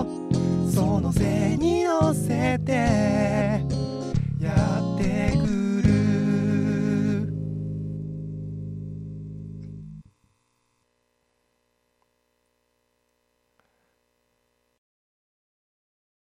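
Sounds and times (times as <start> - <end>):
guitar: 0.0 - 10.1.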